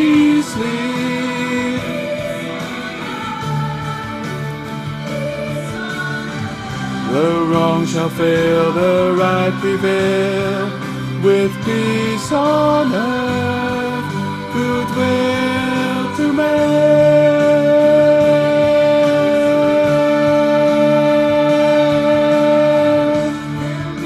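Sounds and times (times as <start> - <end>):
bass part of a song: 0.0 - 24.0.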